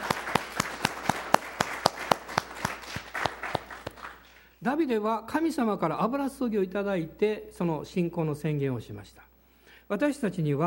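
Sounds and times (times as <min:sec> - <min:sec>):
audience applause: 0:00.0 - 0:04.4
speech: 0:04.6 - 0:09.3, 0:09.9 - 0:10.6.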